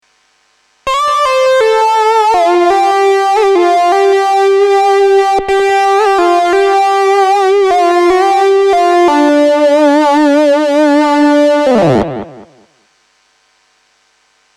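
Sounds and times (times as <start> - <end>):
synthesizer: 0.9 - 12.7.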